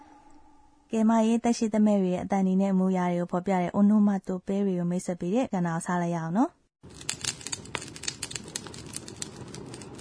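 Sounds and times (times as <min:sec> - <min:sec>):
speech: 0:00.9 - 0:07.1
burning bonfire crackling: 0:06.9 - 0:09.9.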